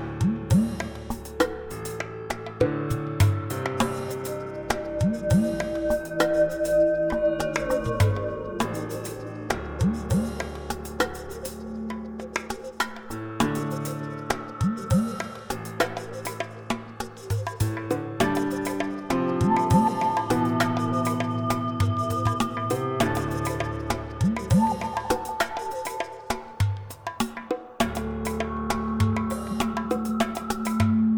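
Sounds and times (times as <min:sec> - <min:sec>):
music beat: 0:00.2 - 0:31.1.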